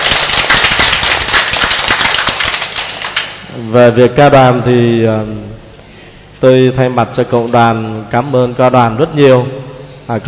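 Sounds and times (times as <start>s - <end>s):
audience applause: 0.0s - 3.4s
speech: 3.6s - 5.5s, 6.4s - 10.2s.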